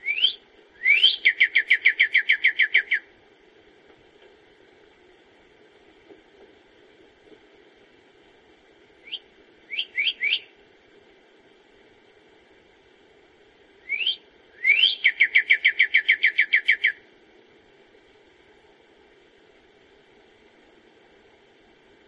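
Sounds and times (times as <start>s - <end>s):
songbird whistles and trill: 0.0s - 3.1s, 9.0s - 10.6s, 13.8s - 17.0s.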